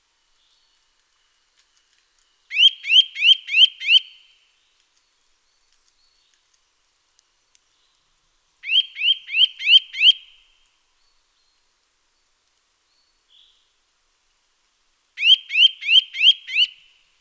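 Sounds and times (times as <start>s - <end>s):
Eurasian nuthatch Sitta europaea calling rising whistled notes: 2.5s - 4.2s, 8.6s - 10.2s, 15.2s - 16.8s.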